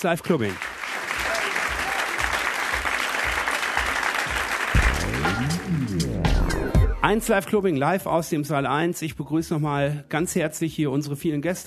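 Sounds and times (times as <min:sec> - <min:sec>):
speech: 0:00.0 - 0:00.7, 0:07.0 - 0:11.6
audience applause in a hall: 0:00.0 - 0:06.4.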